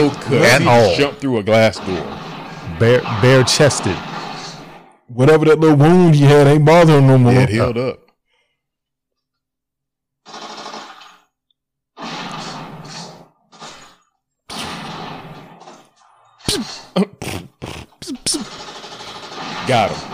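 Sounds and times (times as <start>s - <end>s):
speech: 0.0s - 4.1s, 5.1s - 8.0s, 17.0s - 17.2s, 19.7s - 20.1s
shotgun firing in a film: 1.7s - 4.9s, 10.3s - 11.2s, 12.0s - 15.9s, 18.5s - 20.1s.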